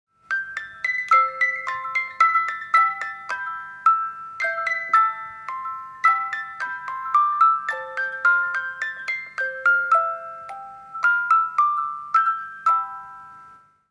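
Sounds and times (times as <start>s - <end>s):
music boxes: 0.2s - 13.9s.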